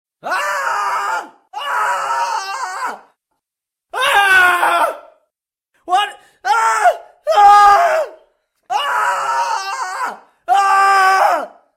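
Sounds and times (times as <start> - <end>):
person screaming: 0.2 - 3.1, 4.0 - 5.2, 6.4 - 11.6.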